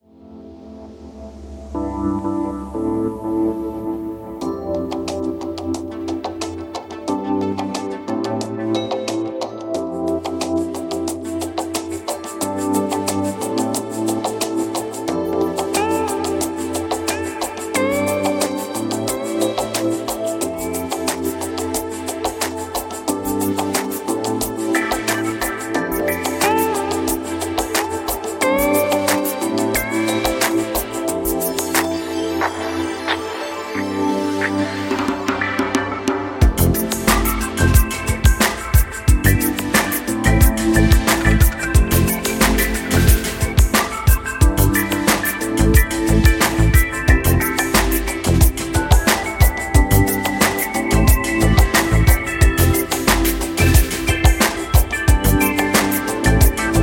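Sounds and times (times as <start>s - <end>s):
chill music mix: 0.0s - 56.8s.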